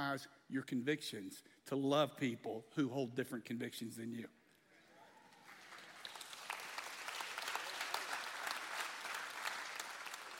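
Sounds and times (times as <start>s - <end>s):
speech: 0.0s - 4.4s
audience clapping: 5.3s - 10.3s.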